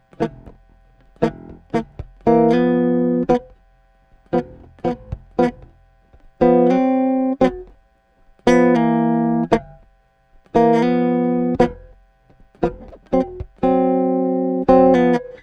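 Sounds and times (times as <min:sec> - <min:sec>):
four-string bass guitar playing boogie chords: 0:00.0 - 0:15.4.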